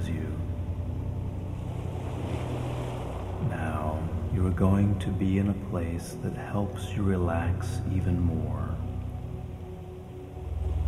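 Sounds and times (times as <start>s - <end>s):
soft low drone: 0.0s - 10.8s
ocean surf washing onto a beach: 1.2s - 6.0s
speech: 4.4s - 8.7s.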